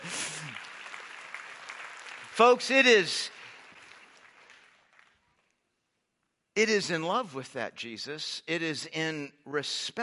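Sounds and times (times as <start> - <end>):
audience applause: 0.0 - 5.4
speech: 2.4 - 3.4, 6.6 - 10.0.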